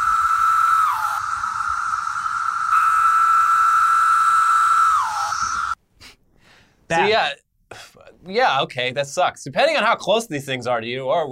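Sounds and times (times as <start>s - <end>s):
cicadas buzzing: 0.0s - 5.8s
speech: 6.9s - 7.4s, 8.2s - 11.2s.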